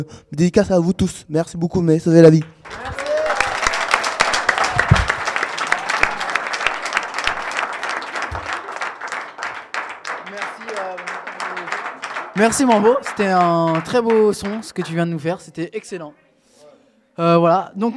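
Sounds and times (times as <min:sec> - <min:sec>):
speech: 0:00.0 - 0:03.0, 0:12.4 - 0:16.2, 0:17.2 - 0:17.9
applause: 0:02.3 - 0:15.4.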